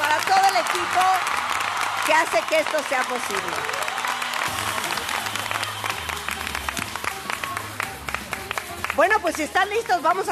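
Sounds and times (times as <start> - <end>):
audience applause: 0.0 - 9.2
speech: 2.1 - 3.8, 9.0 - 10.3.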